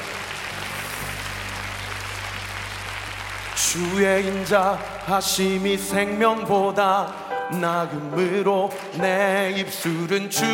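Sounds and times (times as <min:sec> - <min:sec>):
audience applause: 0:00.0 - 0:07.2
speech: 0:03.6 - 0:10.5.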